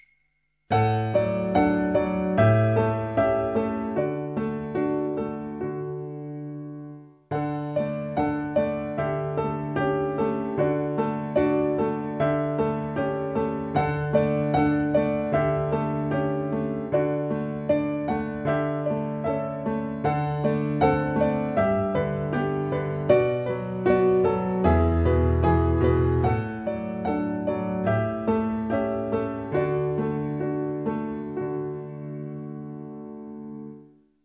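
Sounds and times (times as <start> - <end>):
piano piece: 0.7 - 34.0.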